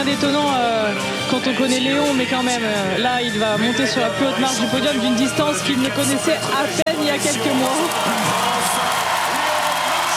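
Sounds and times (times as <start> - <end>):
speech: 0.0 - 9.1
large crowd applauding and cheering at medal ceremony: 4.2 - 10.1
voices whooping: 7.3 - 10.1.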